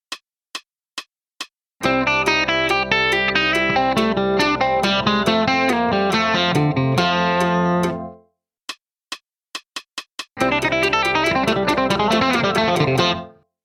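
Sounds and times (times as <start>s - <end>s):
musical lick: 1.8s - 8.2s, 10.4s - 13.3s.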